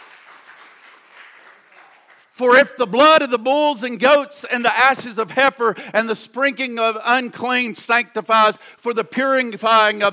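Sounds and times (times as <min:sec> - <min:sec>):
audience clapping: 0:00.0 - 0:02.8
speech: 0:02.4 - 0:10.1.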